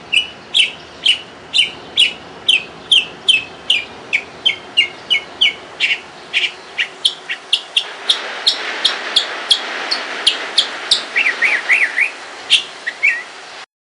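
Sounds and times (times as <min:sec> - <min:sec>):
young mockingbird singing: 0:00.0 - 0:13.5.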